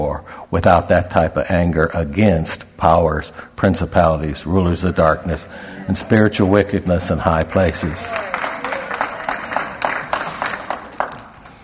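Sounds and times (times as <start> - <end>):
speech: 0.0 - 8.2
audience clapping: 6.3 - 11.6.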